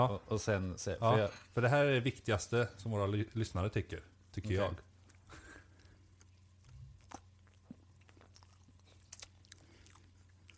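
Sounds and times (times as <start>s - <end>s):
speech: 0.0s - 5.4s
chewing a bite of cream-topped cake: 5.0s - 10.5s.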